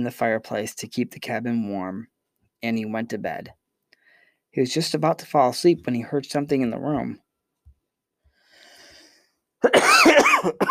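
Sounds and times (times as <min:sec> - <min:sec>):
speech: 0:00.0 - 0:03.6, 0:04.5 - 0:07.2, 0:09.6 - 0:10.6
raspy cough from allergies: 0:09.6 - 0:10.6.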